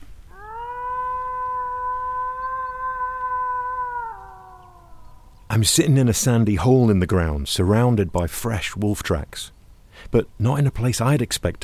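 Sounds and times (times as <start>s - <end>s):
animal howl, not a wolf: 0.3s - 5.4s
speech: 5.5s - 11.6s.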